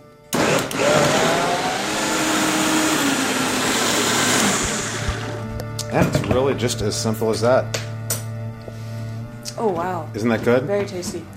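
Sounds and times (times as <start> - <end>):
blender pureeing ingredients with salt and extra virgin olive oil: 0.3 - 5.5
speech: 6.0 - 7.9, 9.6 - 11.3.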